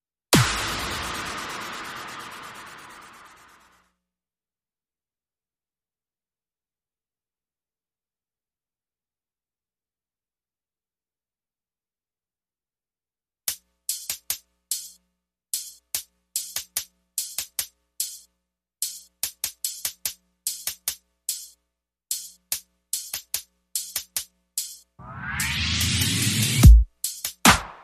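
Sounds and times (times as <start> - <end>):
drums: 0.3 - 3.4, 13.5 - 27.8
sound effects: 0.3 - 3.8, 25.0 - 26.8.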